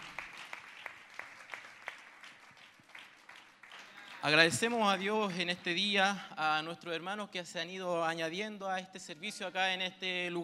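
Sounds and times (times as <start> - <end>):
audience applause: 0.0 - 4.8
speech: 4.2 - 10.4.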